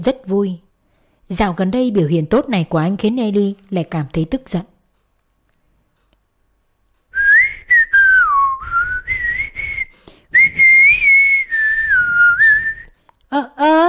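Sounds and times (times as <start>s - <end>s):
speech: 0.0s - 0.6s, 1.3s - 4.7s
man whistling a bright cheerful tune: 7.2s - 13.0s.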